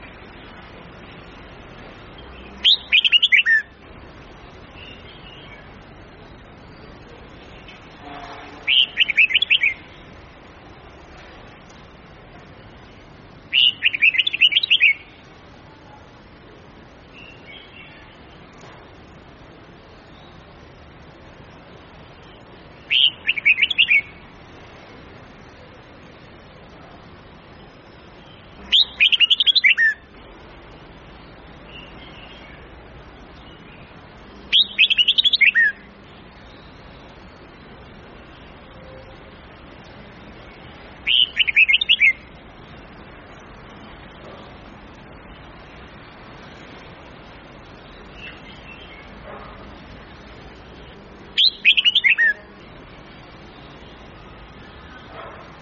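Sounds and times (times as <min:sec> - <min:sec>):
low hiss: 0:00.0 - 0:55.5
red-whiskered bulbul whistled warbling: 0:02.6 - 0:03.7, 0:08.7 - 0:09.8, 0:13.5 - 0:15.1, 0:22.9 - 0:24.1, 0:28.7 - 0:30.1, 0:34.5 - 0:35.9, 0:41.0 - 0:42.2, 0:51.4 - 0:52.5.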